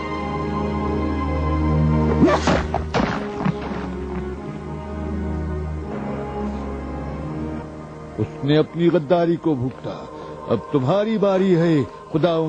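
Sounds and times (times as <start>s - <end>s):
low sustained musical drone: 0.0s - 12.4s
heavy blows as someone is beaten: 2.1s - 4.4s
speech: 8.2s - 12.4s.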